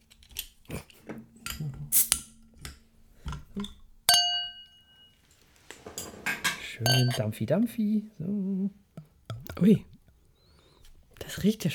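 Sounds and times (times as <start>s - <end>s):
beer bottle opening with a sharp metallic snap: 1.1s - 4.4s
beer bottle clicks and glassy clinks: 1.2s - 7.4s
speech: 6.8s - 8.8s, 9.6s - 9.9s, 11.4s - 11.7s.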